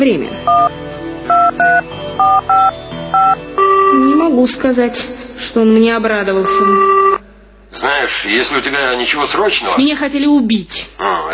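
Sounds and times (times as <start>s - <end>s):
speech: 0.0s - 2.3s, 4.0s - 7.0s, 7.8s - 11.3s
touch-tone beeps of a telephone number being dialed: 0.5s - 0.7s, 1.3s - 4.2s, 6.4s - 7.2s
low hum: 2.3s - 11.3s.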